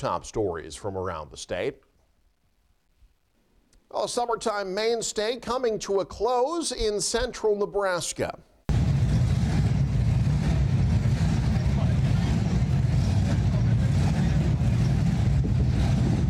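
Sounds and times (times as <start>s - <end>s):
speech: 0.0s - 1.9s, 3.9s - 8.5s
classic hot rod engines revving: 8.7s - 16.2s.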